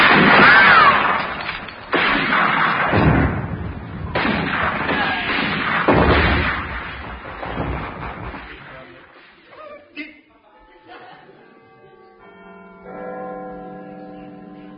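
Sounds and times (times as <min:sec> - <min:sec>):
gunfire opening a battle in a radio drama: 0:00.0 - 0:09.1
laughter: 0:10.6 - 0:12.2.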